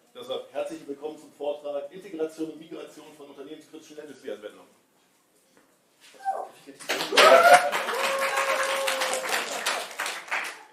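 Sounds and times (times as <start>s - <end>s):
speech: 0.7s - 4.8s
audience applauding at a technical conference talk: 6.8s - 10.7s.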